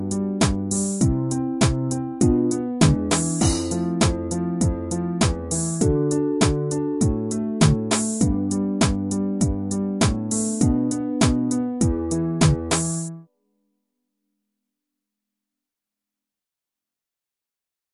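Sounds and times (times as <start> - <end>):
fretless bass groove: 0.0 - 13.1.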